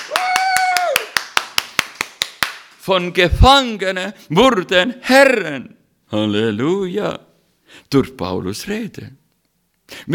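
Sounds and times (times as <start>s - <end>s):
hand clapping at a sermon in a church: 0.0s - 2.8s
speech: 2.9s - 9.2s, 9.9s - 10.1s.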